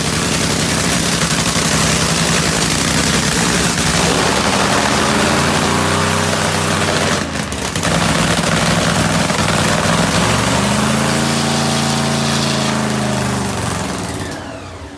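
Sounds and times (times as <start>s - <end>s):
NHRA drag racing car engines roaring: 0.0s - 14.9s.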